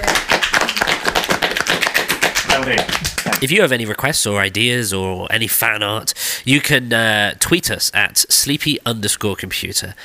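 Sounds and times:
small group clapping: 0.0s - 3.5s
speech: 2.6s - 10.0s.

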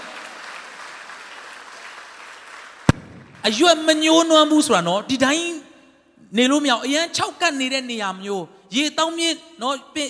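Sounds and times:
church congregation clapping hands during a sermon: 0.0s - 4.0s
speech: 3.4s - 5.6s, 6.3s - 10.0s.

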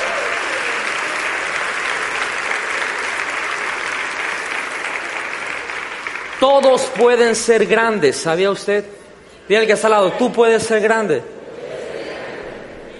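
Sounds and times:
audience applause: 0.0s - 7.7s
speech: 6.4s - 11.4s.

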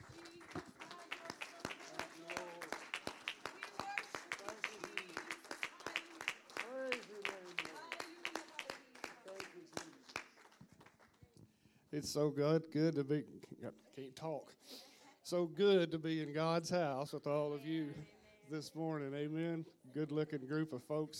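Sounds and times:
audience hand clapping in praise: 0.0s - 11.4s
speech: 12.0s - 21.1s.

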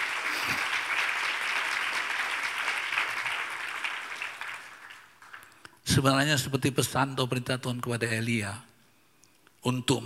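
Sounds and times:
audience applauding: 0.0s - 5.6s
speech: 6.0s - 8.7s, 9.6s - 10.0s.

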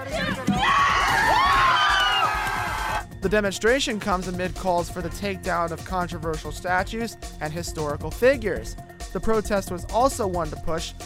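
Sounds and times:
loud celebratory roar: 0.6s - 3.0s
speech: 3.2s - 11.0s.

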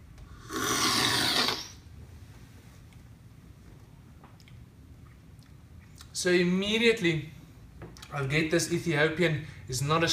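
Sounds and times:
slurping coffee from a spoon: 0.5s - 1.8s
speech: 6.2s - 7.4s, 8.1s - 10.1s.

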